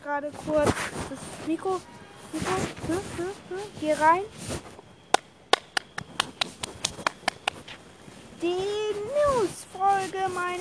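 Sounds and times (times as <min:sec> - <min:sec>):
speech: 0:00.0 - 0:04.7, 0:08.4 - 0:08.7, 0:09.4 - 0:10.5
hand clap: 0:05.1 - 0:07.6.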